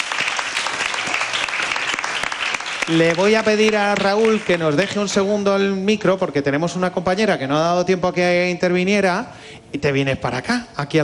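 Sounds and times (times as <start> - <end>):
audience applause at a talk event: 0.0 - 5.1
speech: 2.9 - 11.0.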